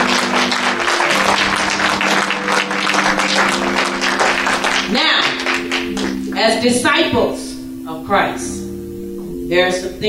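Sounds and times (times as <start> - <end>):
crowd clapping: 0.0 - 6.5
speech: 6.6 - 7.4, 9.5 - 10.0.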